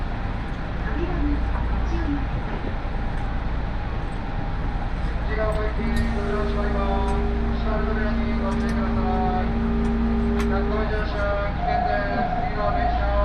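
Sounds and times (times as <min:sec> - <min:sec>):
train rumble on a Nagoya railway line: 0:00.0 - 0:13.2
murmuring voices: 0:05.6 - 0:13.2
train motor whine: 0:05.8 - 0:13.2.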